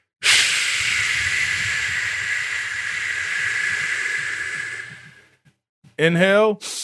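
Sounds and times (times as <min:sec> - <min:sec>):
controlled forceful exhale through open mouth: 0:00.2 - 0:05.4
speech: 0:06.0 - 0:06.8.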